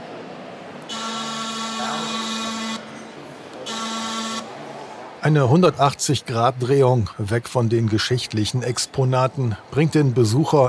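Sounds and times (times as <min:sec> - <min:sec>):
fish factory whistle signal calling workers to work: 0:00.9 - 0:02.8, 0:03.6 - 0:04.5
speech: 0:05.2 - 0:10.6.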